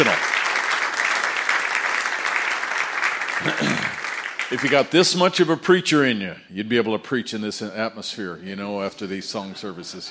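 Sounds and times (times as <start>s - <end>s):
audience applause: 0.0s - 5.1s
speech: 4.5s - 10.0s.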